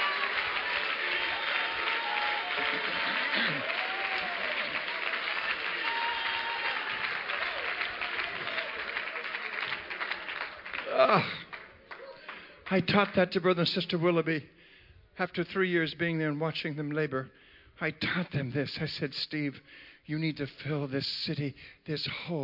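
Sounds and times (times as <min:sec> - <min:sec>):
audience clapping and shouting: 0:00.0 - 0:13.3
speech: 0:11.0 - 0:11.4, 0:12.7 - 0:14.6, 0:15.2 - 0:22.4.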